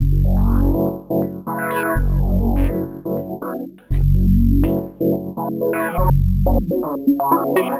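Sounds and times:
filtered synth in F sharp: 0.0 - 7.7.

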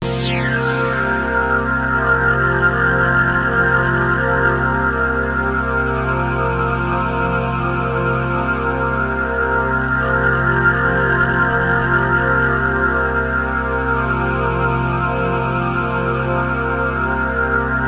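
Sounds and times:
Access Virus B synthesizer: 0.0 - 17.8.

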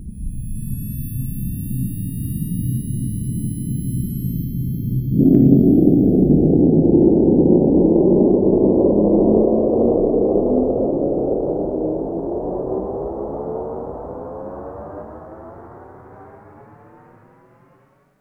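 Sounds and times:
jet: 0.0 - 18.1.

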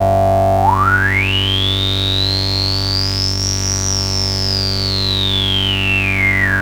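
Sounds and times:
E-MU MOD 5 modular synthesizer note G4: 0.0 - 6.6.

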